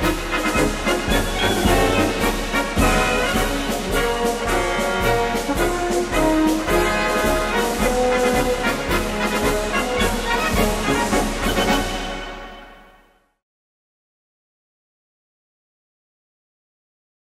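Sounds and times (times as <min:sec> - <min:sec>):
military marches: 0:00.0 - 0:12.6.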